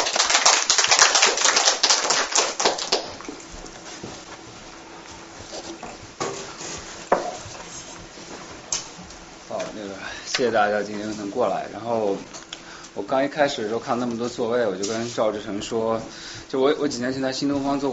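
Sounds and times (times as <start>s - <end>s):
audience applause: 0.0s - 3.4s
speech: 10.4s - 12.4s, 13.0s - 17.9s.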